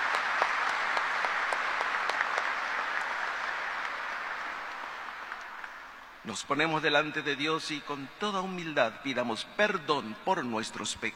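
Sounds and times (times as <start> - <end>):
applause: 0.0 - 6.2
speech: 6.3 - 11.1.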